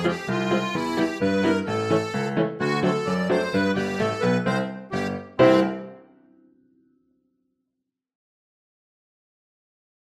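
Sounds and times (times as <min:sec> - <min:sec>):
polka music: 0:00.0 - 0:06.2.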